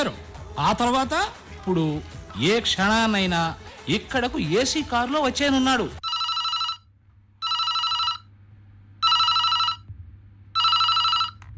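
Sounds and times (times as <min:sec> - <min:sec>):
speech: 0:00.0 - 0:06.0
telephone ringing: 0:06.0 - 0:08.3, 0:09.0 - 0:09.9, 0:10.6 - 0:11.5
low steady hum: 0:06.8 - 0:11.5.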